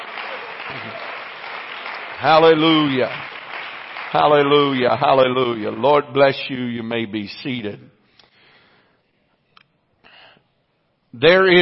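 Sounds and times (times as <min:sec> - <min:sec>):
audience clapping hands: 0:00.0 - 0:05.8
speech: 0:02.2 - 0:03.3, 0:04.1 - 0:08.0, 0:11.1 - 0:11.6.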